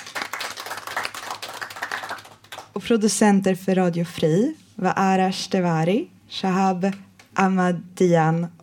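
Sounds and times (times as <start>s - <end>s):
audience applause: 0.0s - 2.7s
speech: 2.8s - 8.6s.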